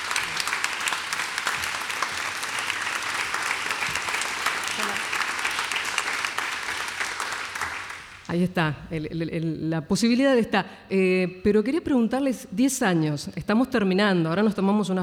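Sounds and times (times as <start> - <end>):
audience clapping: 0.0 - 8.4
speech: 8.3 - 15.0.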